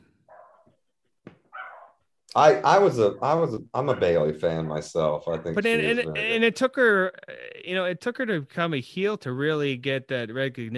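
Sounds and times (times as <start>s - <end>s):
dogs barking: 0.2s - 0.9s, 1.5s - 2.1s, 3.8s - 4.3s
dog whining: 0.3s - 2.0s
speech: 2.4s - 10.7s.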